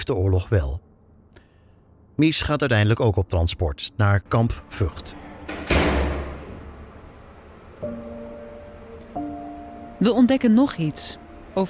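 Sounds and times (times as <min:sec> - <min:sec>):
speech: 0:00.0 - 0:00.9, 0:02.2 - 0:05.7, 0:10.0 - 0:11.6
prison cell door metallic clanks: 0:04.5 - 0:06.9
prison cell door swinging open with a dull low thud: 0:05.2 - 0:06.9.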